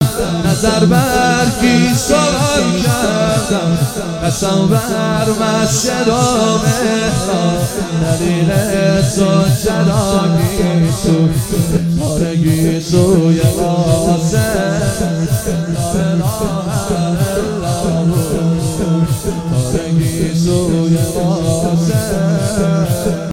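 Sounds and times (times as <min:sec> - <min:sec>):
devotional singing: 0:00.0 - 0:23.3.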